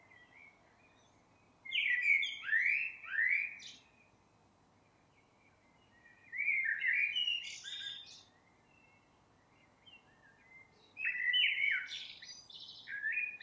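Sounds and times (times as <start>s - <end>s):
Eurasian blackbird Turdus merula singing mellow fluting phrases: 1.7s - 3.9s, 6.2s - 9.0s, 9.8s - 13.4s.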